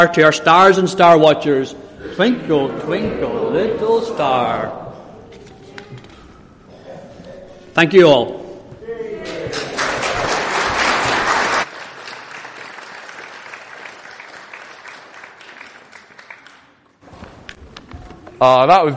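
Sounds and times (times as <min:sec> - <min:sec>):
speech: 0:00.0 - 0:04.8, 0:07.8 - 0:08.4, 0:18.4 - 0:18.9
audience applause: 0:09.3 - 0:16.8.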